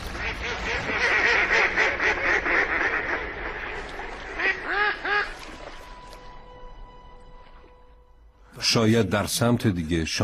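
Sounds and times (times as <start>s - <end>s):
mallard-like ducks quacking: 0.1s - 5.5s
speech: 8.7s - 10.2s.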